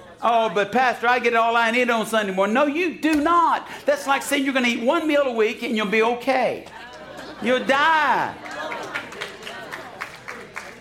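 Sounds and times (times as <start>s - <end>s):
laughter: 0.0s - 0.8s, 6.6s - 10.7s
speech: 0.2s - 6.8s, 7.4s - 8.5s
church congregation clapping in rhythm: 6.6s - 7.5s, 8.1s - 10.7s.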